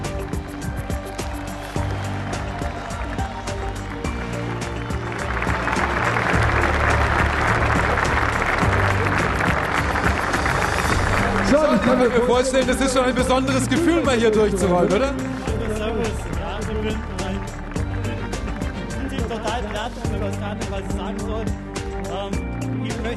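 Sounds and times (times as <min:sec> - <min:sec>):
audience applause: 0:00.0 - 0:22.2
speech: 0:12.0 - 0:15.3, 0:19.8 - 0:21.6.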